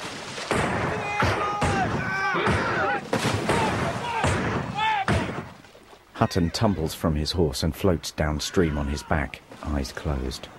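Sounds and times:
gunfire as rebels open fire on soldiers crossing a river: 0.5s - 5.6s
speech: 6.2s - 10.5s.

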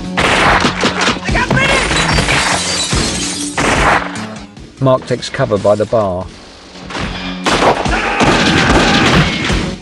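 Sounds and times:
gunshots in a film shootout in a bar: 0.0s - 2.6s, 3.4s - 4.4s, 7.4s - 9.8s
speech: 4.8s - 6.4s.

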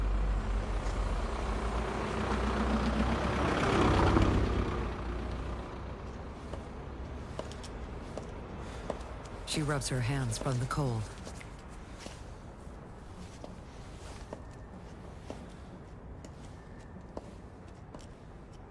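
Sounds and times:
vehicle engine rumble and tire noise passing by in cold weather: 0.0s - 8.6s
speech: 9.6s - 11.3s.

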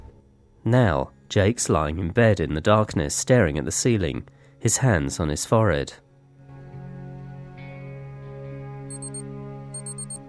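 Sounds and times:
speech: 0.6s - 6.0s
alarm clock beeping under a pillow: 8.9s - 9.2s, 9.8s - 10.2s.

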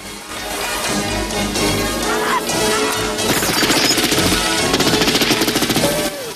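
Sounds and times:
loud, continuous backdrop: 0.0s - 6.3s
automatic gunfire from a patrol boat's gunner in an action film: 3.3s - 6.1s.

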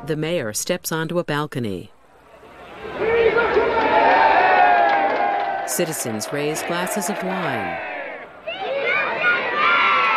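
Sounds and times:
speech: 0.0s - 2.0s, 5.7s - 7.9s
schoolchildren cheering and shouting: 2.4s - 5.7s, 6.4s - 10.1s.

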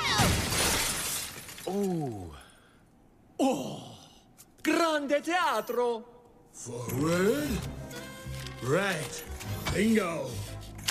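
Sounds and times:
glass shattering as skaters smash through glass: 0.0s - 1.9s
speech: 1.7s - 2.4s, 3.4s - 3.9s, 4.6s - 8.0s, 8.6s - 10.5s.

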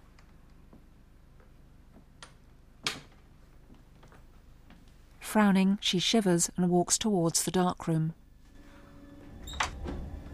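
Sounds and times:
speech: 5.3s - 8.2s
door opening: 8.6s - 10.3s.

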